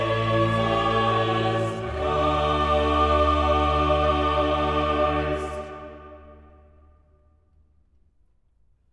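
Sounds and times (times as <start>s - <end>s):
chorus singing: 0.0s - 6.9s.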